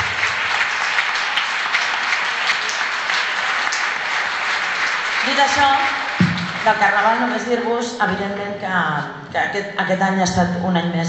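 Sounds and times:
audience applause: 0.0 - 7.7
speech: 5.4 - 6.0, 6.6 - 11.0.

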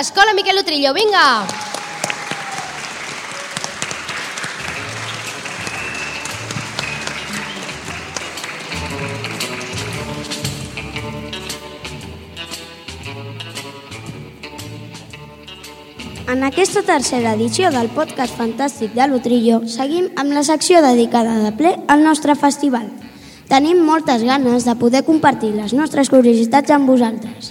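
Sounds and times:
speech: 0.0 - 1.7, 16.3 - 27.4
loud applause from students: 1.3 - 10.8.

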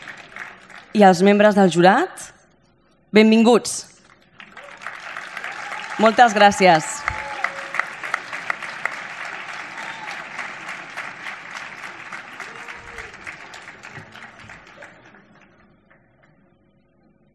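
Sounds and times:
audience applause: 0.0 - 1.0, 4.1 - 16.4
speech: 1.0 - 2.4, 3.1 - 3.9, 6.0 - 6.9.

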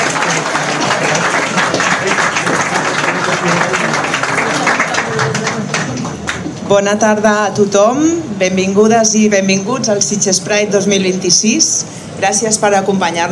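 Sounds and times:
audience applause at the opening of Sitges Pride in a hotel: 0.0 - 6.6
speech: 6.7 - 13.3.

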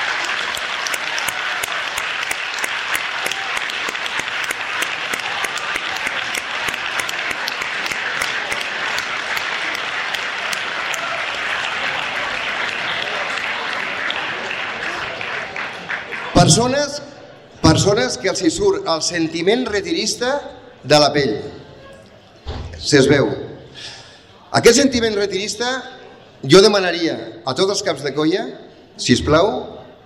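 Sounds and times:
crowd applause: 0.0 - 16.9
speech: 16.4 - 17.0, 17.7 - 21.6, 22.8 - 23.4, 24.6 - 29.8.

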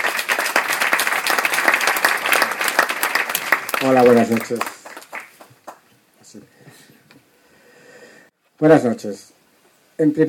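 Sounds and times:
audience applause: 0.0 - 5.8
speech: 3.8 - 4.7, 8.6 - 9.3, 10.0 - 10.2.

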